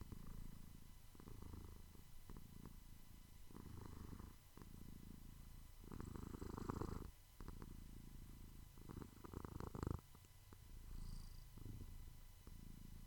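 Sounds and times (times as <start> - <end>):
cat purring: 0.0 - 13.0.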